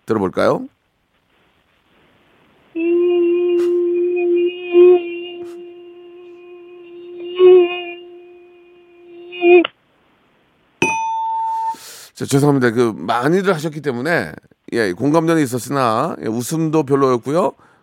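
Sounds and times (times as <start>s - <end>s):
speech: 0.1s - 0.8s, 12.2s - 17.7s
voice imitating a mosquito buzzing: 2.8s - 9.7s
higher bell-like tone: 10.8s - 11.8s.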